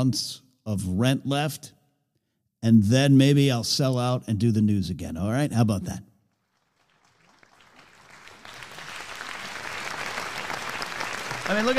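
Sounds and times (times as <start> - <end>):
speech: 0.0 - 1.8, 2.6 - 6.1, 11.5 - 11.7
audience applauding: 6.3 - 11.7.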